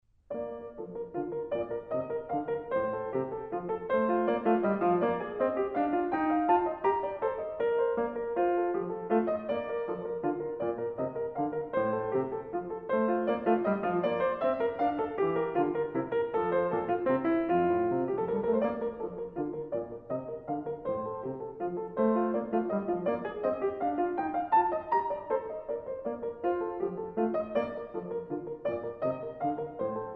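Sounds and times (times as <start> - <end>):
baroque keyboard minuet in B-flat major: 0.3 - 30.1.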